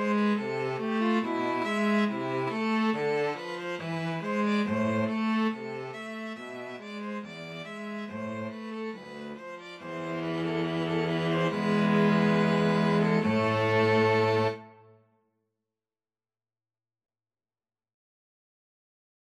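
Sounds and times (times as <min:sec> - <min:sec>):
string trio playing a gavotte: 0:00.0 - 0:14.8.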